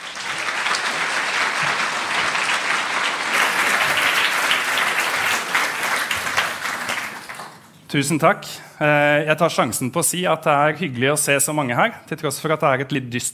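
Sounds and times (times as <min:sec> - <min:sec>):
audience applause: 0:00.0 - 0:07.8
speech: 0:07.9 - 0:13.3.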